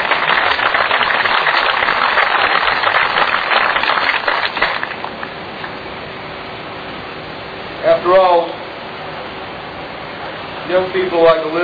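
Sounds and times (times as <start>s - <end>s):
audience applause: 0.0s - 5.2s
speech: 11.0s - 11.6s.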